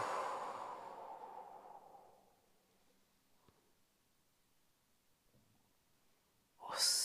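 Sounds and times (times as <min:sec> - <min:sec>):
long soft exhale: 0:00.0 - 0:02.4.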